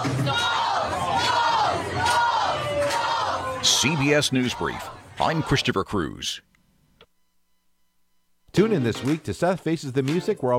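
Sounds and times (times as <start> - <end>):
crowd cheering and whooping for Tim Walz at the Minnesota State Fair: 0.0 - 5.4
speech: 3.8 - 6.5, 8.5 - 10.5.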